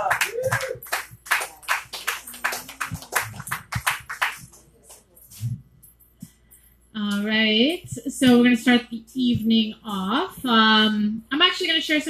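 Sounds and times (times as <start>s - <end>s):
audience applause: 0.0s - 4.9s
speech: 7.2s - 12.0s.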